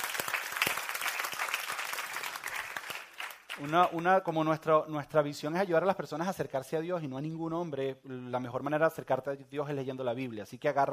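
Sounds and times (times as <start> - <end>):
audience applause: 0.0 - 4.0
speech: 3.6 - 10.9.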